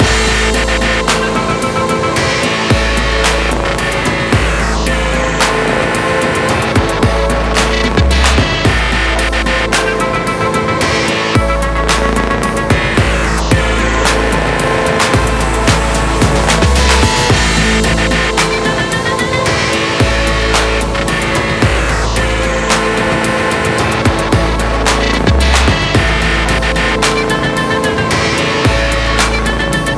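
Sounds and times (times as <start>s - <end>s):
story background music loop: 0.0s - 29.9s.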